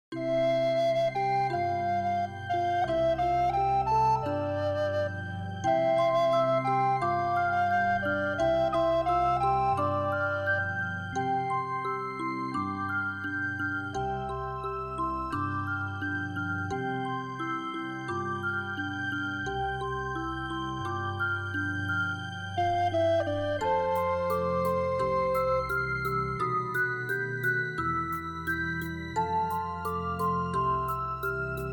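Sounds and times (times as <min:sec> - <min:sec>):
music backing track: 0:00.1 - 0:31.7.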